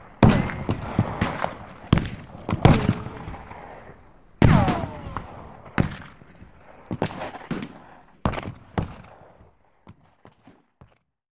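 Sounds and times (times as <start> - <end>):
war battle ambience: 0.0 - 9.3.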